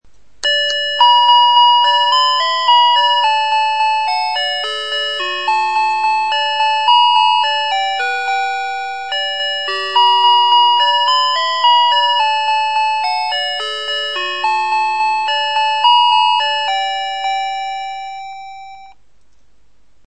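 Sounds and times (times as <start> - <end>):
electric melodies: 0.4 - 19.0.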